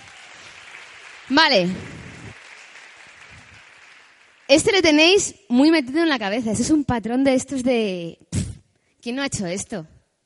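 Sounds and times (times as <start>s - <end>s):
audience applause: 0.0s - 4.9s
speech: 1.3s - 1.9s, 4.5s - 8.3s, 9.0s - 9.9s.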